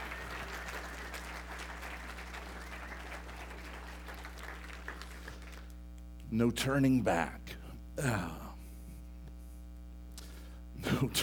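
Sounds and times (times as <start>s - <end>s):
audience clapping hands in praise: 0.0s - 5.8s
speech: 6.3s - 8.4s, 11.0s - 11.2s.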